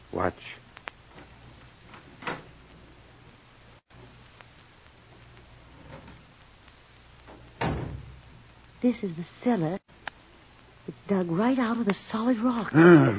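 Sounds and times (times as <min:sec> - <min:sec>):
speech: 0:00.1 - 0:00.7, 0:08.8 - 0:10.0, 0:11.1 - 0:13.1
door opening: 0:01.9 - 0:02.6, 0:05.7 - 0:06.3, 0:07.3 - 0:08.2.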